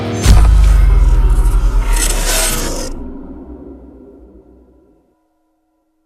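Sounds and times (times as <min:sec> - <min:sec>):
bass drop: 0:00.2 - 0:04.9.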